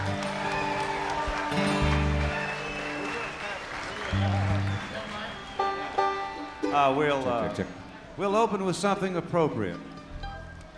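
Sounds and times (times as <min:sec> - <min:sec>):
audience applause: 0:00.0 - 0:07.8
speech: 0:06.8 - 0:09.9.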